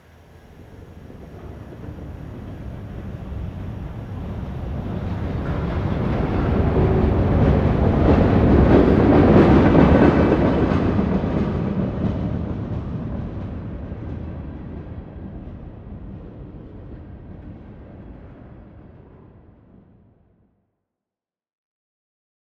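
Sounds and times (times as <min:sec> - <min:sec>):
distant train passing: 0:00.0 - 0:19.4.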